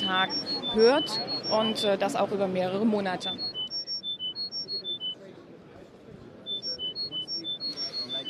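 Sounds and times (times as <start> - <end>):
short pure beeping tones from a tinnitus therapy patient device: 0.0 - 2.0, 3.1 - 5.2, 6.5 - 8.2
murmuring voices: 0.0 - 8.2
speech: 0.1 - 3.5.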